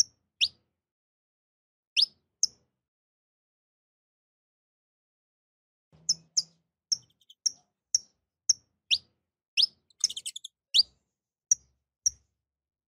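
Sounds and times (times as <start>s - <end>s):
domestic canary singing: 2.0s - 2.2s, 6.0s - 10.9s.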